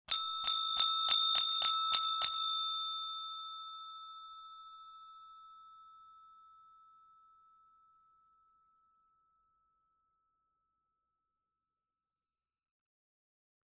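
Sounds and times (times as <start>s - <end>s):
desk bell ringing: 0.1s - 5.0s.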